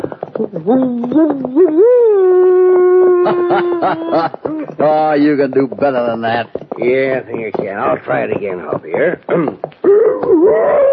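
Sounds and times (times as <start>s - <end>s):
speech: 0.4s - 2.6s, 3.3s - 10.9s
person imitating a coyote howl: 0.4s - 4.7s, 9.8s - 10.9s.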